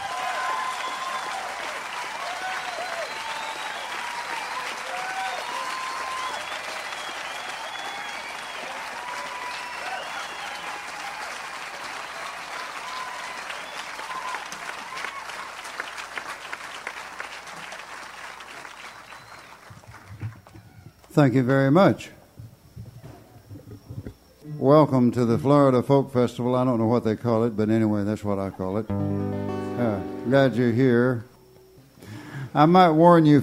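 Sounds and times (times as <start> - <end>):
audience applause welcoming a musician at a folk festival: 0.0 - 20.7
speech: 21.2 - 22.2, 24.9 - 31.3, 32.6 - 33.4.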